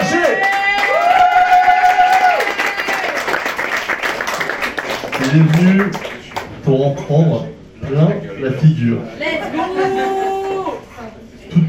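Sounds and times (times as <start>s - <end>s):
audience applauding: 0.0s - 6.5s
speech: 5.3s - 10.1s
laughter: 9.2s - 10.8s.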